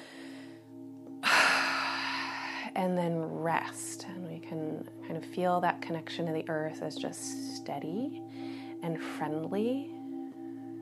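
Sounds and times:
big deep breath: 0:00.0 - 0:02.7, 0:08.3 - 0:08.8
speech: 0:02.8 - 0:10.0.

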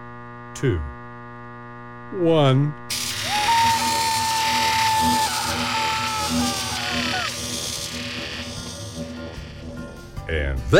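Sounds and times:
speech: 0:00.6 - 0:01.0, 0:02.1 - 0:02.9, 0:10.3 - 0:10.7
electric chair buzzing zap: 0:02.9 - 0:10.2.

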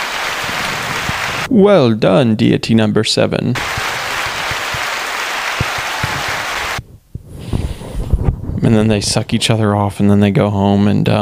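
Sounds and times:
applause: 0:00.0 - 0:01.5, 0:03.6 - 0:06.8
speech: 0:01.5 - 0:03.9, 0:08.7 - 0:11.2.

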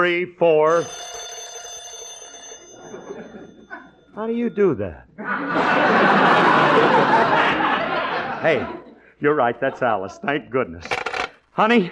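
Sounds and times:
speech: 0:00.0 - 0:01.1, 0:04.2 - 0:07.8, 0:08.4 - 0:11.0, 0:11.6 - 0:11.9
telephone ringing with an electronic trill: 0:00.6 - 0:04.7, 0:10.8 - 0:11.4
laughter: 0:02.8 - 0:04.0, 0:05.2 - 0:10.2.

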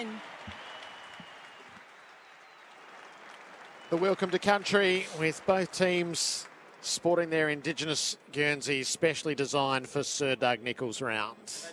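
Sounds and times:
audience applause for players: 0:00.0 - 0:08.2
speech: 0:03.9 - 0:11.7.

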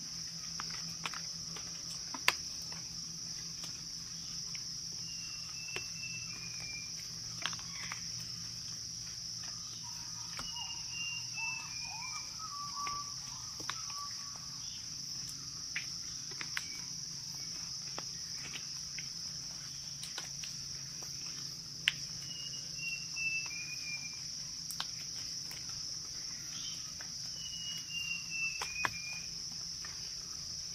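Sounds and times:
jungle insect drone: 0:00.0 - 0:30.7
jungle birds calling in falling whistled phrases: 0:09.8 - 0:14.3.

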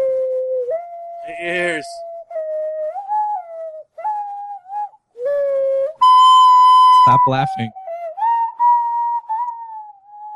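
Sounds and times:
ocarina playing: 0:00.6 - 0:10.3
speech: 0:01.3 - 0:02.1, 0:07.1 - 0:07.8.

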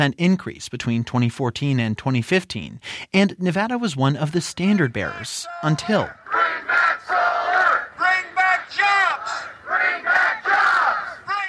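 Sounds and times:
speech: 0:00.0 - 0:07.3
crowd of protesters chanting and shouting: 0:05.0 - 0:11.4.

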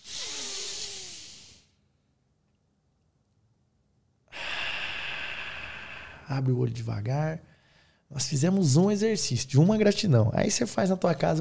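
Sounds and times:
deep breathing during a guided gratitude exercise: 0:00.0 - 0:01.8, 0:04.3 - 0:06.5, 0:07.4 - 0:08.1
speech: 0:06.3 - 0:07.5, 0:08.1 - 0:11.3.

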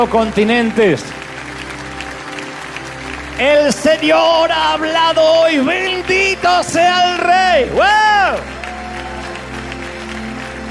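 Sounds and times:
speech: 0:00.0 - 0:01.3, 0:03.4 - 0:08.6
audience applauding: 0:00.0 - 0:10.6.

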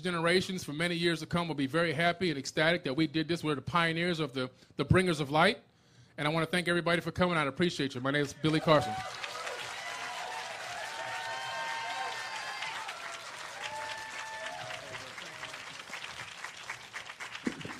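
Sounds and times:
speech: 0:00.0 - 0:09.3
large audience applauding: 0:08.5 - 0:17.7
cheers and whistles: 0:08.6 - 0:15.9.

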